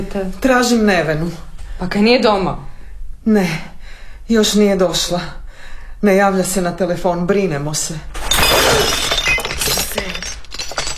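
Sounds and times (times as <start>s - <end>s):
speech: 0.0s - 3.7s, 4.3s - 5.4s, 6.0s - 8.2s
drinking glasses shattering: 8.2s - 10.9s.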